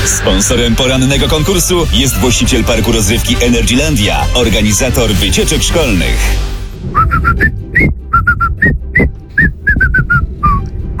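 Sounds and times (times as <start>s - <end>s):
speech: 0.2s - 8.0s
low rumble: 6.8s - 10.9s
person whistling a Mexican folk tune: 6.9s - 10.9s.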